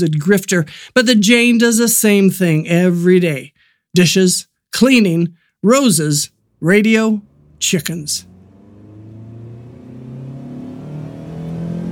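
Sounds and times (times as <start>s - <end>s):
speech: 0.0s - 8.3s
shiny 39 Caddy Fleetwood motoring down the street: 7.1s - 11.9s.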